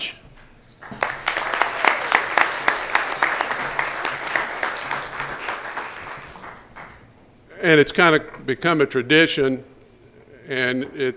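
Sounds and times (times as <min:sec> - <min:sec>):
audience applause: 0:00.8 - 0:07.1
speech: 0:07.6 - 0:09.7, 0:10.5 - 0:11.1.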